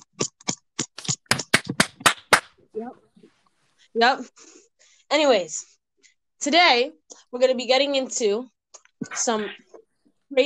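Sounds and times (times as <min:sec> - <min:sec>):
hands clapping: 0:00.0 - 0:02.6
speech: 0:04.0 - 0:05.7, 0:06.4 - 0:09.6.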